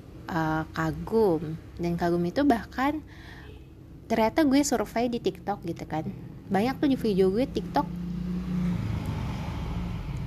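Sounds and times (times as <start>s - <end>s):
speech: 0.3s - 3.4s, 4.1s - 8.0s
motorcycle passing: 6.1s - 10.2s.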